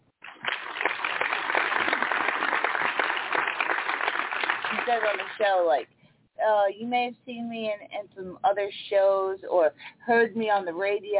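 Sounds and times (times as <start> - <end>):
audience applause: 0.2 - 5.4
speech: 4.9 - 11.1.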